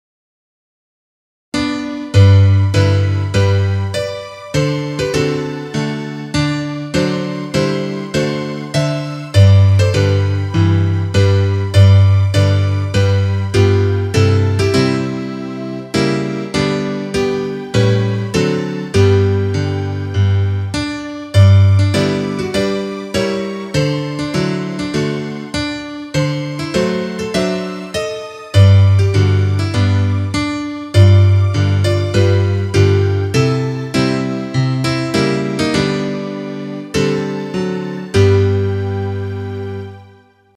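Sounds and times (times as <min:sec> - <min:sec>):
instrumental music: 0:01.6 - 0:40.5.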